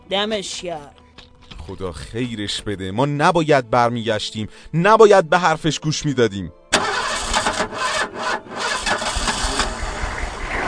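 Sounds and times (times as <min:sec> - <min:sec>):
speech: 0:00.1 - 0:01.0, 0:01.6 - 0:06.9
car engine starting: 0:06.7 - 0:10.6.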